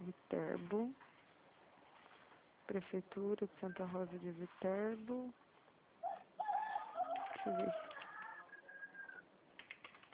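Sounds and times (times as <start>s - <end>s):
speech: 0.0s - 1.1s, 2.7s - 5.4s, 7.4s - 7.9s
rooster crowing: 6.0s - 9.2s.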